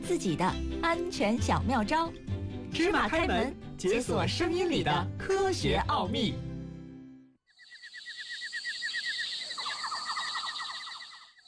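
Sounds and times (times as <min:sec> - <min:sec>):
speech: 0:00.1 - 0:06.5
cicadas singing in summer: 0:07.5 - 0:11.4.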